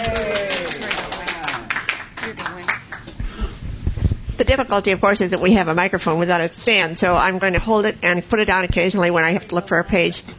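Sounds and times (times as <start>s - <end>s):
audience clapping to welcome a speaker: 0.0s - 3.3s
speech: 4.5s - 10.3s.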